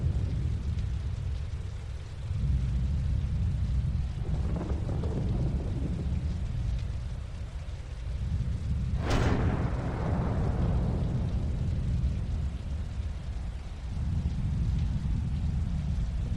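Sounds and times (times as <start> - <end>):
rain: 0.0 - 16.3
thunder: 2.4 - 16.3.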